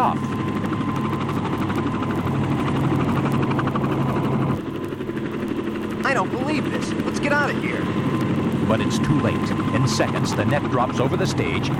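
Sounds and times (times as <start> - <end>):
jet helicopter flying off: 0.0 - 11.7
speech: 6.5 - 8.1, 8.7 - 11.7.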